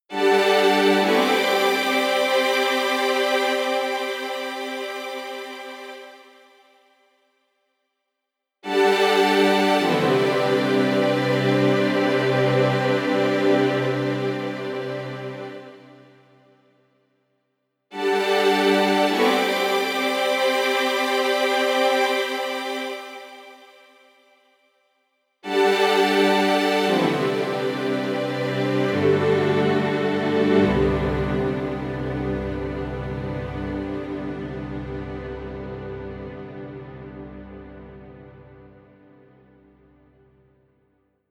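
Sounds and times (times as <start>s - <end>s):
strings: 0.1s - 6.4s, 8.6s - 16.2s, 17.9s - 23.8s, 25.4s - 39.6s.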